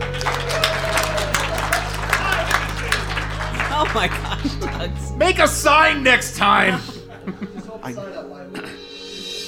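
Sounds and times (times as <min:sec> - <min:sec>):
audience applause: 0:00.0 - 0:06.0
laughter: 0:00.0 - 0:08.8
speech: 0:03.9 - 0:08.8.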